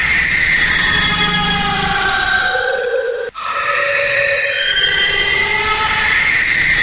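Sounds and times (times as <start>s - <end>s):
shrill insect-like whine from a film soundtrack: 0.0s - 6.8s.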